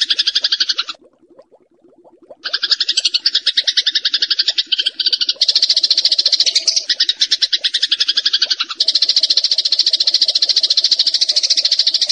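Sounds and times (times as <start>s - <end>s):
bar-winged prinia song: 2.5s - 12.1s.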